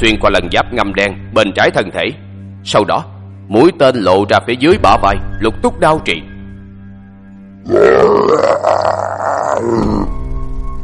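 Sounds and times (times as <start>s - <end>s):
speech: 0.0s - 6.3s, 7.6s - 10.2s
monster roaring in pain: 7.6s - 10.1s.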